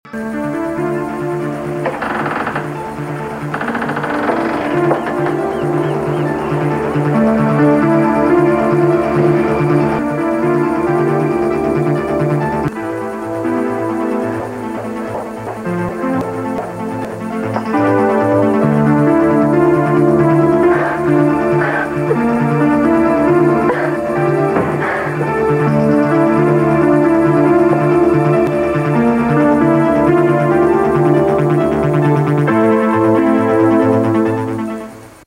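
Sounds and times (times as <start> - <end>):
uptempo dramatic theme music: 0.1 - 35.2.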